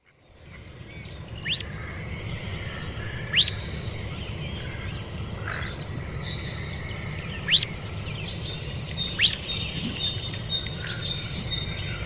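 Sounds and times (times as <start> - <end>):
low background noise: 0.0 - 12.0
bird whistling: 9.2 - 10.0.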